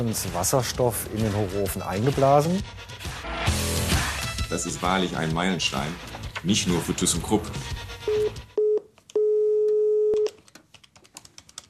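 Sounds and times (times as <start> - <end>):
speech: 0.0 - 3.2, 4.5 - 7.8
telephone call tone beeps: 8.1 - 10.3.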